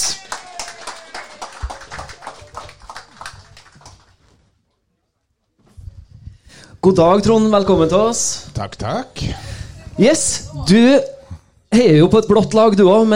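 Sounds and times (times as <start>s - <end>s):
audience applause welcoming a stage guest: 0.0s - 4.2s
speech: 6.8s - 13.1s.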